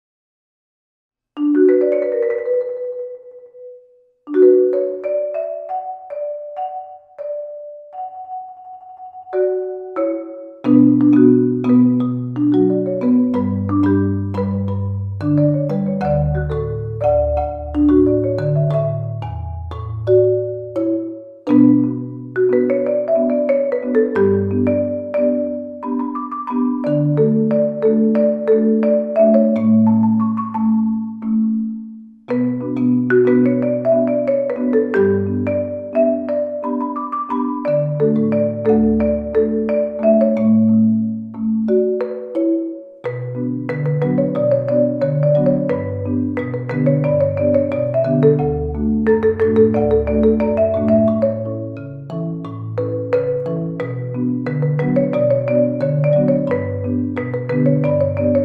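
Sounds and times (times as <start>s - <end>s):
marimba cover: 1.4s - 58.4s.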